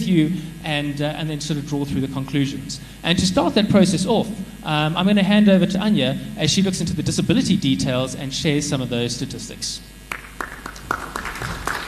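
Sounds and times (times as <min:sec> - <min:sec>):
speech: 0:00.0 - 0:10.0
warm round of applause: 0:10.1 - 0:11.8.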